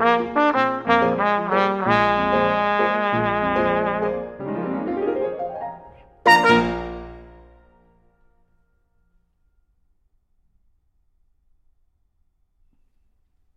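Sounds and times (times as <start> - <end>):
trumpet and piano playing an allegro: 0.0 - 8.1.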